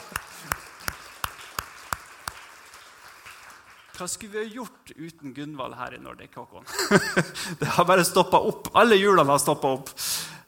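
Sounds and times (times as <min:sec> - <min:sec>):
slow evenly spaced hand claps: 0:00.0 - 0:04.0
speech: 0:04.0 - 0:10.1.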